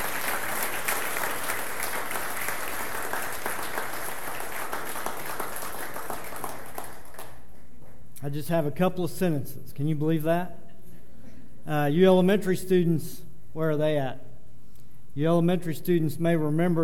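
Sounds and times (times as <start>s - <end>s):
audience applause: 0.0s - 7.5s
speech: 8.3s - 10.6s, 11.7s - 14.2s, 15.2s - 16.8s.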